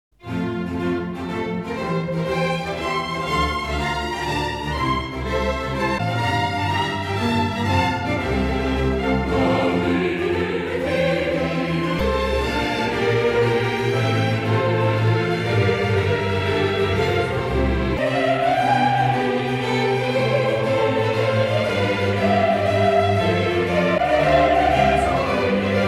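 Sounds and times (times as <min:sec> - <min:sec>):
orchestra playing: 0:00.1 - 0:25.8
vocal ensemble singing: 0:07.6 - 0:25.8.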